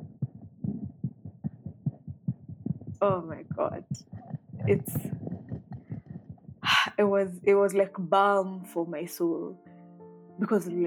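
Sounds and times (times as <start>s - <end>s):
fetal heartbeat from an ultrasound monitor: 0.0s - 7.7s
low hum: 0.0s - 7.7s
speech: 3.0s - 5.2s, 7.0s - 9.6s, 10.4s - 10.8s.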